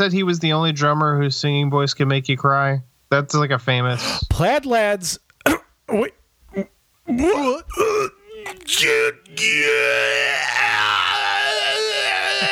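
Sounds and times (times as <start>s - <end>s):
speech: 0.0s - 11.0s
person screaming in imitation of a chest-burster birth: 6.6s - 12.5s.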